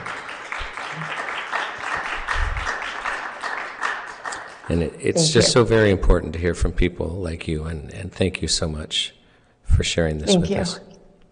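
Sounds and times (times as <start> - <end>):
audience clapping: 0.0 - 5.7
speech: 4.7 - 9.2, 9.8 - 10.9.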